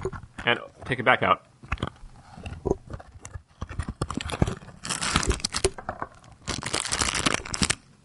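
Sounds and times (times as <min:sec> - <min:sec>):
speech: 0:00.4 - 0:01.5
package rustling while opened and closed: 0:02.9 - 0:07.8.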